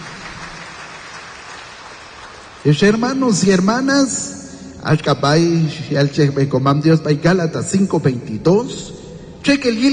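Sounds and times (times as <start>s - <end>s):
audience clapping loudly: 0.0s - 3.2s
speech: 2.6s - 9.9s.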